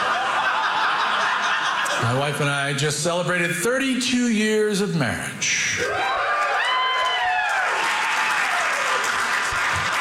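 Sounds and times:
laughter: 0.0s - 2.5s
speech: 2.0s - 6.2s
cheers and whoops: 5.8s - 10.0s
audience applause: 5.9s - 10.0s.

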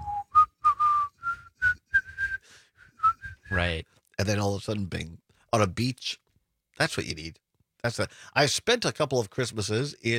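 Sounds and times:
man whistling a slow melodic tune: 0.0s - 3.6s
speech: 3.6s - 6.2s, 6.8s - 10.1s.

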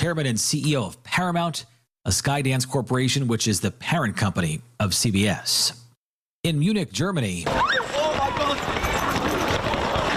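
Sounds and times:
speech: 0.0s - 5.8s, 6.4s - 8.7s
crowd running into the Oktoberfest grounds in Munich: 7.5s - 10.1s.

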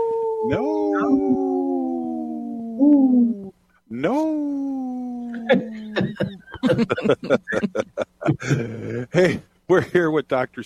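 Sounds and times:
wolf howling: 0.0s - 3.4s
speech: 0.5s - 1.5s, 2.8s - 10.6s
laughter: 5.3s - 9.4s.

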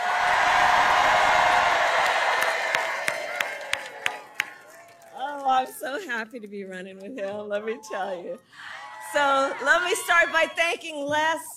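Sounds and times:
large crowd cheering and applauding: 0.0s - 5.7s, 8.6s - 10.9s
speech: 5.6s - 11.5s.

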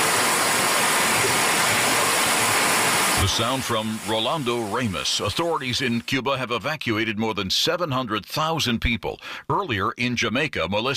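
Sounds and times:
floodwater rushing through streets of Santiago de Cuba: 0.0s - 6.1s
speech: 3.2s - 10.9s.

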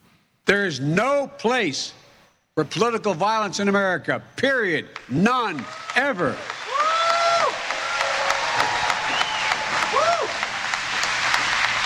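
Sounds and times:
speech: 0.5s - 2.0s, 2.6s - 6.6s
audience applause after a speech: 5.5s - 11.8s.

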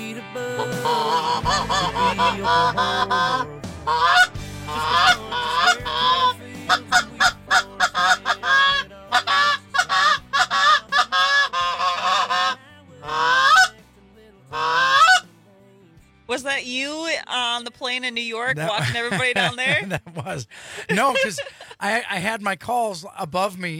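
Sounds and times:
speech: 0.4s - 4.3s, 17.7s - 23.7s
flock of geese honking: 0.6s - 13.8s, 14.5s - 15.3s, 18.4s - 19.9s
laughter: 18.5s - 22.1s.

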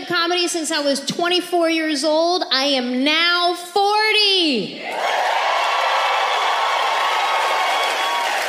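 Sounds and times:
speech: 0.3s - 5.3s
audience cheering: 4.8s - 8.4s.

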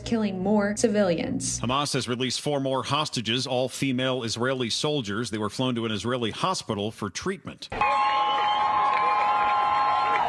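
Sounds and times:
speech: 0.1s - 8.1s
crowd outside cheering as a helicopter with released hostages arrives: 7.7s - 10.2s.

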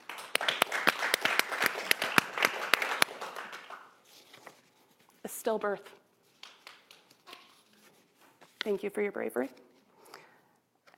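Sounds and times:
audience applause: 0.0s - 3.9s
speech: 5.2s - 6.0s, 8.6s - 9.6s.

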